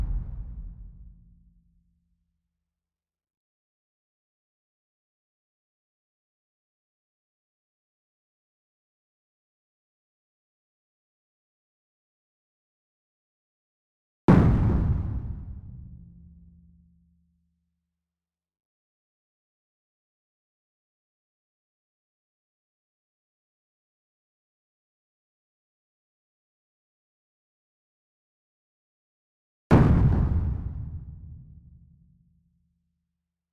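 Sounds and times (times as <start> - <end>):
clean explosions: 0.0 - 1.1, 14.3 - 15.9, 29.7 - 31.4.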